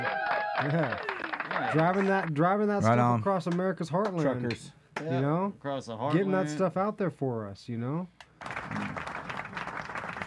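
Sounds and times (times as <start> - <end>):
short round of applause: 0.0 - 2.3, 8.4 - 10.2
speech: 0.6 - 8.2.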